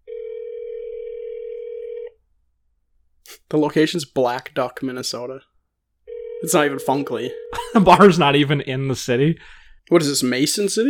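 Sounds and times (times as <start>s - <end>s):
buzzy phone ringback tone: 0.0s - 2.2s, 6.1s - 7.6s
speech: 3.5s - 5.5s, 6.4s - 10.8s.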